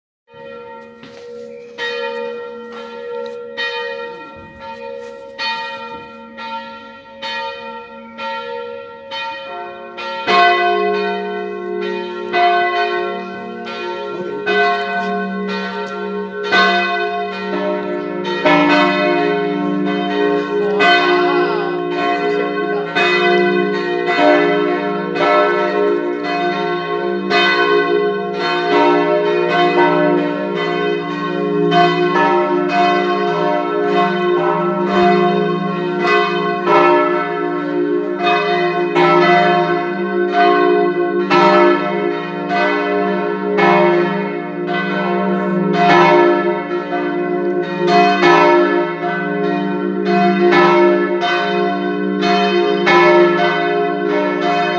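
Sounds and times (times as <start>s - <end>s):
bells ringing in Gräfenberg: 0.3s - 54.7s
laughter: 11.2s - 24.7s, 25.4s - 27.7s, 29.4s - 39.8s.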